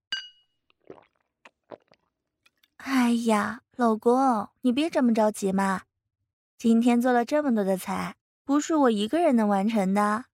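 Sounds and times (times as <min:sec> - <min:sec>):
glasses clinking in a toast: 0:00.1 - 0:00.4
soft sips or swallows: 0:00.7 - 0:02.1
speech: 0:02.8 - 0:05.9, 0:06.6 - 0:10.3.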